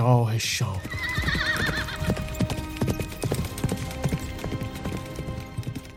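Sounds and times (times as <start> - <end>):
speech: 0.0 - 1.7
Rakhsh, the hero Rostam's horse, galloping: 0.6 - 5.9
Rakhsh, the hero Rostam's horse, whinnying: 0.8 - 2.4.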